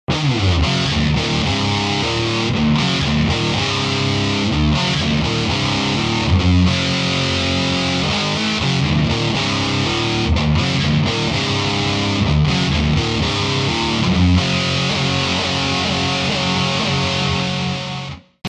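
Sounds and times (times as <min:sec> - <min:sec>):
Badcat double gain overdrive: 0:00.1 - 0:18.4.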